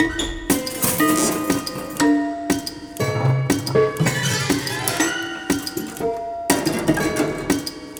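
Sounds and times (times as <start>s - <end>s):
prepared piano loop: 0.0s - 7.9s.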